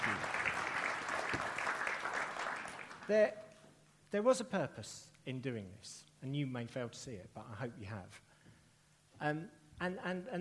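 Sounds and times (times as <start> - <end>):
audience round of applause: 0.0 - 3.1
speech: 3.1 - 3.4, 4.1 - 8.3, 9.2 - 10.4.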